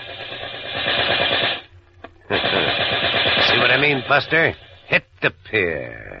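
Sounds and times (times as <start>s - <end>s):
rapid machine-gun-like gunfire sound effect in a radio drama: 0.0s - 1.7s, 2.3s - 4.6s
speech: 2.3s - 2.8s, 3.6s - 6.1s.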